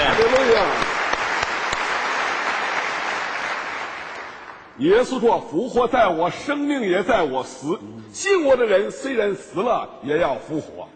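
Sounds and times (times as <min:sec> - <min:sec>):
audience applause: 0:00.0 - 0:04.8
speech: 0:04.8 - 0:10.9.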